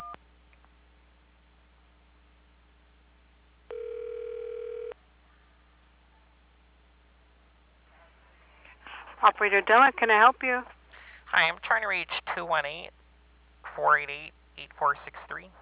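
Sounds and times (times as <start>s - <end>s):
phone keypad tone from pressing 1 on an automated phone menu: 3.7s - 5.0s
speech: 9.2s - 13.0s, 13.8s - 15.6s.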